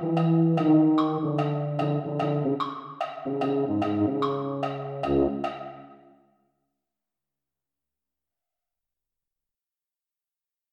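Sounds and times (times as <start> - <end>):
tuba: 0.0 - 5.9.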